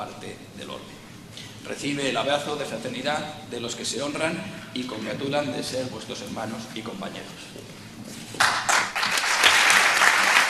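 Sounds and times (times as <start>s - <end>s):
speech: 1.7s - 7.6s
crowd applause at an honorary doctorate ceremony: 8.4s - 10.4s.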